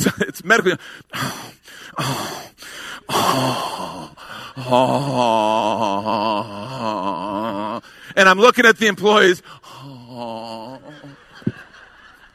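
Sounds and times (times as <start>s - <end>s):
laughter: 0.0s - 0.8s, 10.2s - 12.3s
speech: 0.0s - 11.6s
exaggerated labored gasping and moan-like wheeze: 0.7s - 8.2s, 9.4s - 11.6s.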